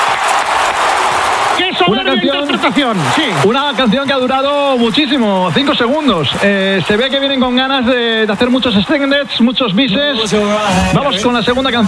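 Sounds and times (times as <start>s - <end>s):
audience ovation applause: 0.0s - 11.8s
speech: 1.9s - 11.8s.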